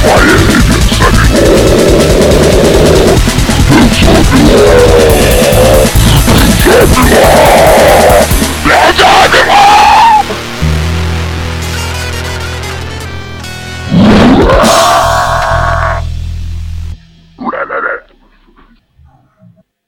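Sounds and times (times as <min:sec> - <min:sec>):
vocals: 0:00.0 - 0:10.2
chainsaw-like guitar: 0:00.0 - 0:17.0.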